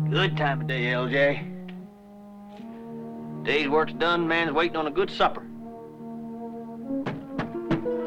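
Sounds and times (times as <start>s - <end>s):
speech: 0.1s - 1.5s, 3.5s - 5.5s
knocking on the inside of a locked church door: 7.0s - 7.9s.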